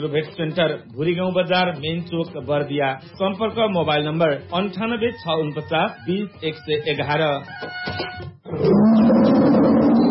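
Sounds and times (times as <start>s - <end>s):
speech: 0.0s - 9.0s
tiger roar: 8.5s - 10.0s.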